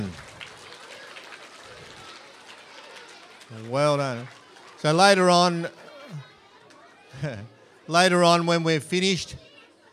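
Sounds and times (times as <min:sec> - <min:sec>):
audience clapping: 0:00.0 - 0:05.6
speech: 0:03.5 - 0:06.3, 0:07.2 - 0:09.4.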